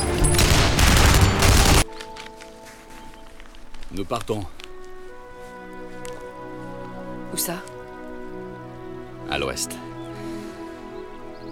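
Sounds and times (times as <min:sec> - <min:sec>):
soldiers opening fire on a German Panzer tank: 0:00.3 - 0:01.8
speech: 0:04.0 - 0:04.6, 0:07.3 - 0:07.7, 0:09.3 - 0:09.9.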